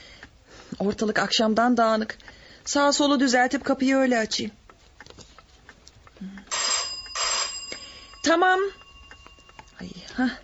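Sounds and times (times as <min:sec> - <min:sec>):
speech: 0:00.8 - 0:04.6, 0:08.3 - 0:08.8, 0:10.2 - 0:10.4
electric bell ringing: 0:06.5 - 0:10.4.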